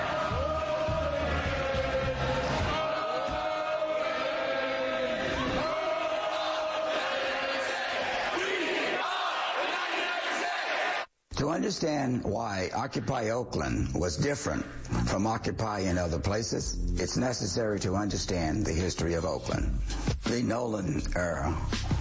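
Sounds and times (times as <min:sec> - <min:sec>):
protest crowd in New York chanting while marching to City Hall: 0:00.0 - 0:11.1
speech: 0:11.7 - 0:21.9.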